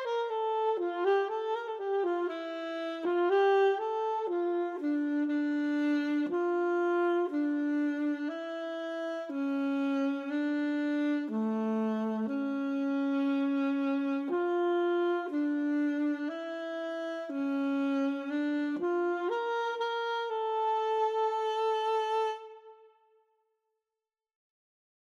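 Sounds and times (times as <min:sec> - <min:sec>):
alto saxophone: 0:00.0 - 0:23.2.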